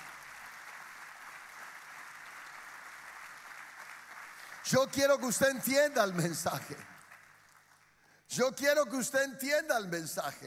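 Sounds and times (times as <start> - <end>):
audience applause: 0.0 - 7.8
speech: 4.7 - 6.9, 8.4 - 10.4.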